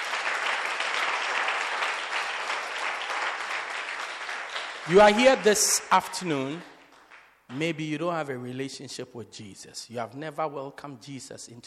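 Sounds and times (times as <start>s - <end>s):
audience clapping hands: 0.0s - 7.9s
speech: 4.9s - 6.7s, 7.5s - 11.6s.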